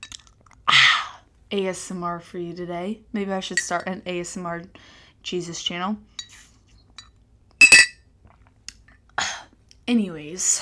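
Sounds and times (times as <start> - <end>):
speech: 1.5 - 6.4, 9.9 - 10.5
mug being handled clinking: 7.6 - 8.0.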